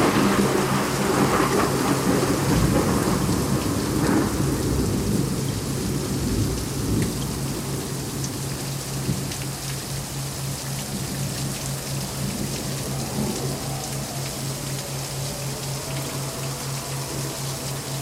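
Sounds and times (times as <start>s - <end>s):
thunder in a rainstorm: 0.0s - 7.3s
thundering rainstorm: 0.0s - 18.0s.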